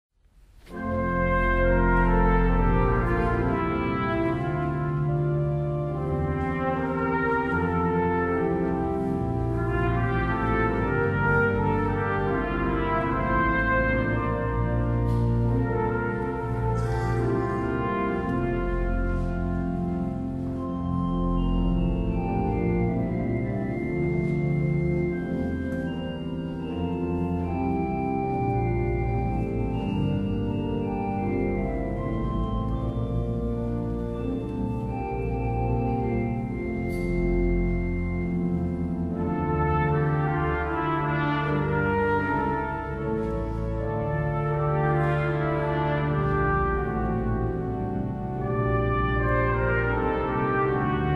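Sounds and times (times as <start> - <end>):
organ: 0.6 - 51.1
trumpet playing a largo: 0.6 - 51.1.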